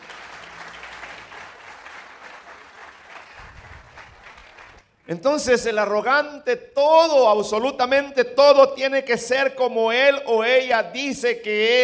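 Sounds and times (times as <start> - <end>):
audience clapping: 0.0 - 5.1
speech: 5.1 - 11.8.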